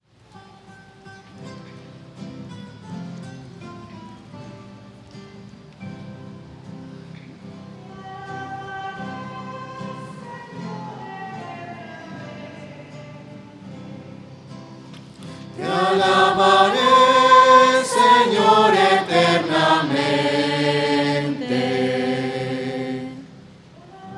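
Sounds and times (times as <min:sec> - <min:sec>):
voices singing a psalm: 0:07.8 - 0:14.3, 0:15.2 - 0:24.1.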